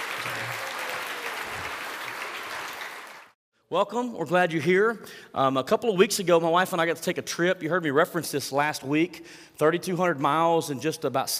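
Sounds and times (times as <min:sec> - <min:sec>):
congregation applauding after a baptism in church: 0:00.0 - 0:03.4
speech: 0:03.7 - 0:11.3.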